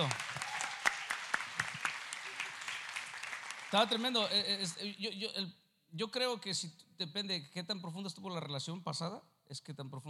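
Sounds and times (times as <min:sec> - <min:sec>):
sparse audience applause: 0:00.0 - 0:04.4
speech: 0:03.7 - 0:10.0.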